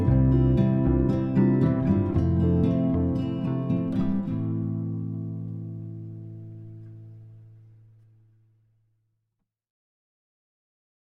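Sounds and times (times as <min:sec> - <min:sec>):
music: 0:00.0 - 0:08.8.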